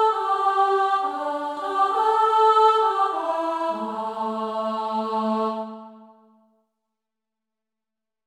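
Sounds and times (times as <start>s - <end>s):
alto voice singing a Christmas carol: 0.0s - 6.2s.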